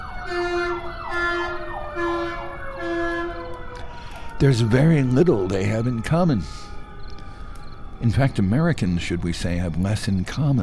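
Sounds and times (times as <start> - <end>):
emergency vehicle siren passing by: 0.0 - 10.6
faint noise: 0.0 - 10.6
speech: 4.4 - 6.7, 8.0 - 10.6.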